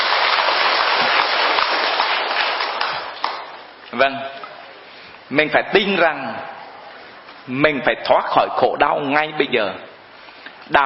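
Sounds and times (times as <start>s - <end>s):
audience applause: 0.0s - 3.6s
speech: 4.0s - 4.4s, 5.3s - 6.5s, 7.4s - 9.9s, 10.7s - 10.8s.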